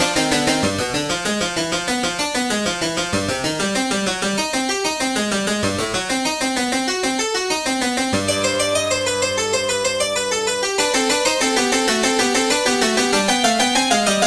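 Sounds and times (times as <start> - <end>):
harpsichord with coupled registers: 0.0 - 14.2.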